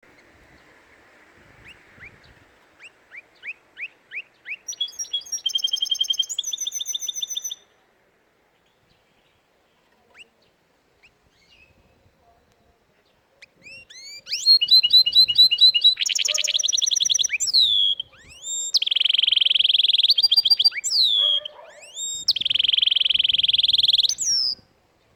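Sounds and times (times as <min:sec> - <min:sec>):
canary singing: 0:01.6 - 0:07.7, 0:13.4 - 0:24.7.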